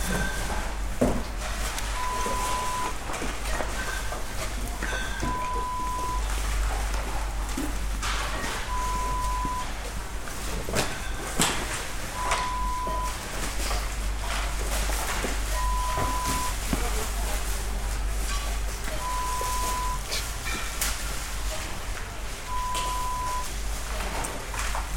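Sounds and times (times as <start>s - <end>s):
supermarket ambience: 0.0s - 24.9s.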